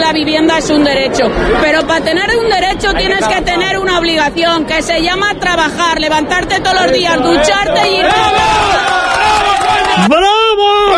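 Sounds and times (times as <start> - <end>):
speech: 0.1 - 9.2, 10.0 - 10.9
crowd shouting at a rally: 6.8 - 10.9.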